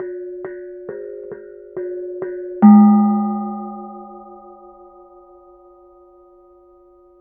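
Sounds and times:
kenong gong: 2.6 - 5.5.

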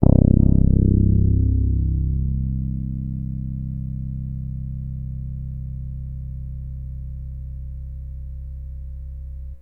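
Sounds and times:
Access Virus B synthesizer: 0.0 - 4.2.

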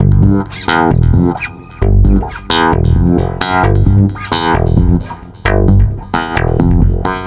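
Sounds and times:
stick bass loop: 0.0 - 7.2.

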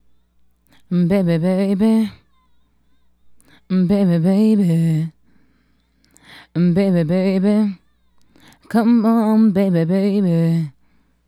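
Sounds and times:
female solo hip-hop and RnB vocals: 0.8 - 5.2, 6.4 - 10.8.

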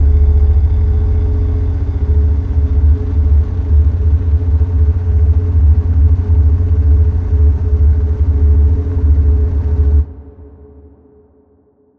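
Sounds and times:
drone in F: 0.0 - 10.4.

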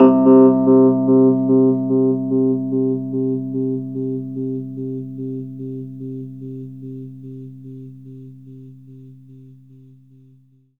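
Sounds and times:
Rhodes electric piano octaves: 0.0 - 5.3.

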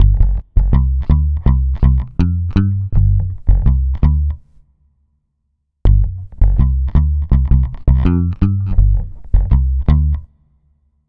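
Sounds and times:
dub electric bass: 0.0 - 4.6, 5.9 - 10.3.

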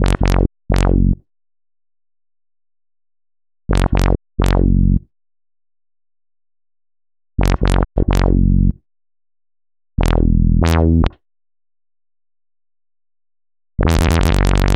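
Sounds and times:
wobble bass: 0.0 - 1.2, 3.7 - 5.0, 7.4 - 8.7, 10.0 - 11.2, 13.8 - 14.7.

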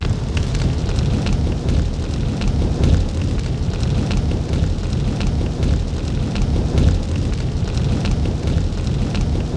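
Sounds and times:
fire sound effect: 0.0 - 9.5.

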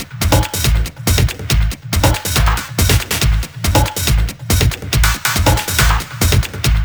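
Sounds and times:
music loop at 140 BPM: 0.0 - 6.8.

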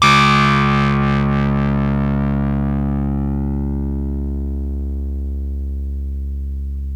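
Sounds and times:
Rhodes electric piano: 0.0 - 6.9.

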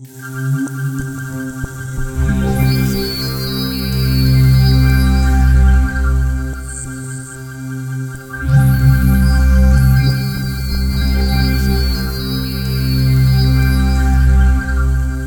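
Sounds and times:
synth line in C2: 0.0 - 15.2.

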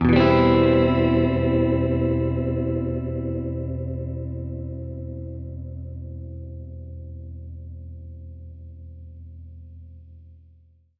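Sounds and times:
Gretsch guitar Eminb6 chord: 0.0 - 8.1.

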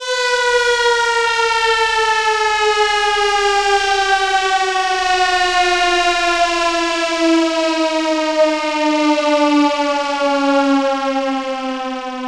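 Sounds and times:
alarm: 0.0 - 12.2.

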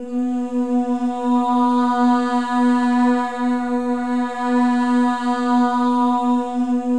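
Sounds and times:
choir of voices: 0.0 - 6.9.

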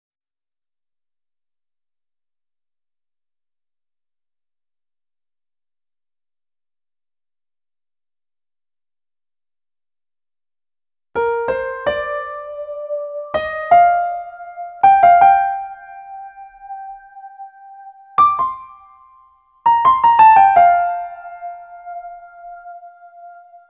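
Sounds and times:
electro lounge piano fills: 11.2 - 19.0, 19.6 - 23.6.

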